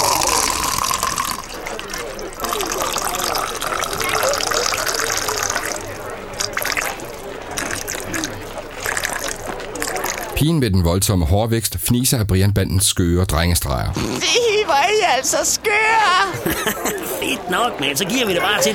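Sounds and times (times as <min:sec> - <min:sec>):
man urinating into a glass: 0:00.0 - 0:10.4
speech: 0:10.4 - 0:18.7
laughter: 0:14.0 - 0:18.7.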